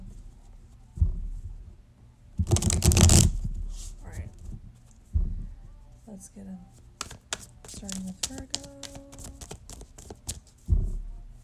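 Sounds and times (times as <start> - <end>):
tarot cards pulled and shuffled from a deck: 2.4 - 3.9, 7.0 - 10.6
speech: 6.2 - 6.8, 7.8 - 9.1.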